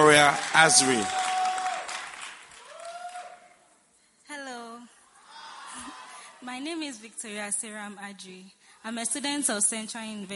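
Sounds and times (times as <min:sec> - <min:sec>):
church congregation applauding a woman coming forward to give testimony: 0:00.0 - 0:03.7
speech: 0:00.2 - 0:01.2, 0:06.6 - 0:10.3.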